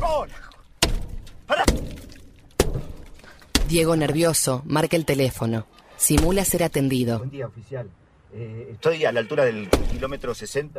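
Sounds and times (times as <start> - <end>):
speech: 0.2 - 0.5, 3.7 - 10.7
lug wrench striking car windshield: 0.8 - 3.7.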